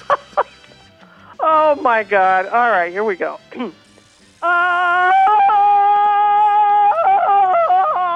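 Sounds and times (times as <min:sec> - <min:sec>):
speech: 0:01.7 - 0:03.8, 0:04.4 - 0:05.1
person doing a Tarzan yell: 0:04.4 - 0:08.1.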